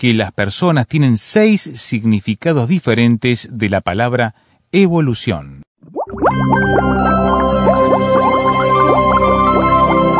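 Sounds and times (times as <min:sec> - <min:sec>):
speech: 0:00.0 - 0:05.7, 0:06.4 - 0:08.0
bubbling liquid sound effect: 0:05.8 - 0:10.1.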